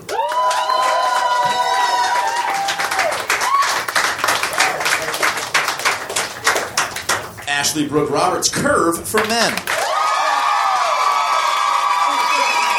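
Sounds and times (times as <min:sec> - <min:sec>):
audience whooping and cheering: 0:00.0 - 0:06.1, 0:09.6 - 0:12.7
audience applause: 0:00.0 - 0:07.4, 0:09.2 - 0:12.7
speech: 0:07.7 - 0:09.8.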